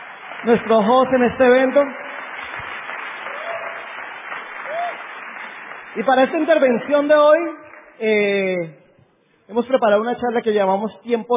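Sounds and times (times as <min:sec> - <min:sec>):
audience applause: 0:00.0 - 0:08.0
speech: 0:00.4 - 0:02.0, 0:06.0 - 0:08.8, 0:09.5 - 0:11.3.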